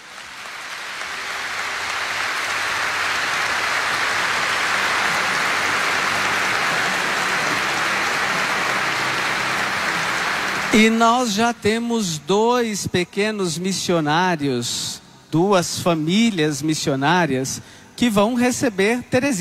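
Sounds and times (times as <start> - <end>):
big round of applause: 0.0 - 11.6
speech: 10.8 - 19.4.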